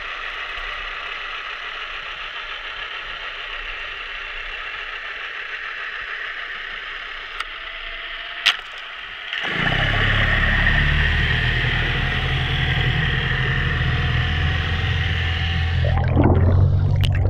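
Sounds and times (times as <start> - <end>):
gabarre boat motor heard underwater in Vézac: 9.4 - 17.2.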